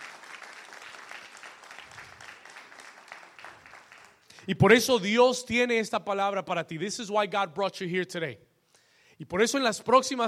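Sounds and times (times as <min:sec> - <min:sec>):
audience applause: 0:00.0 - 0:04.2
speech: 0:04.5 - 0:08.5, 0:09.2 - 0:10.2.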